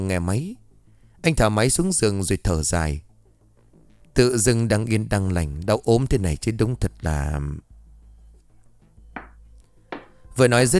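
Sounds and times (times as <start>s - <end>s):
speech: 0.0s - 0.6s, 1.2s - 3.1s, 4.2s - 7.7s, 10.4s - 10.7s
stomping thumps muffled through a floor from above: 9.2s - 10.2s.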